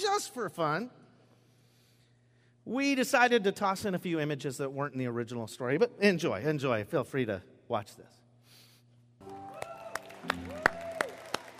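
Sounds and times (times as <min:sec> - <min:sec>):
speech: 0:00.0 - 0:01.0, 0:02.6 - 0:08.2
audience applause: 0:09.2 - 0:11.5
cheering or whistling: 0:09.2 - 0:11.5.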